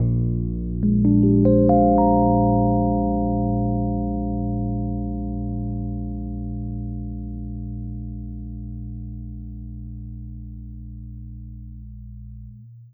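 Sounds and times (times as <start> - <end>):
electric piano: 0.0 - 9.8.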